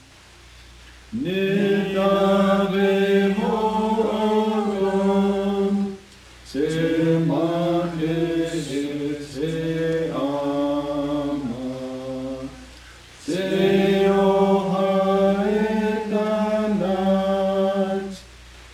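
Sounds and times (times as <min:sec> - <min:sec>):
hymn singing from a hymnbook: 0:01.1 - 0:18.7.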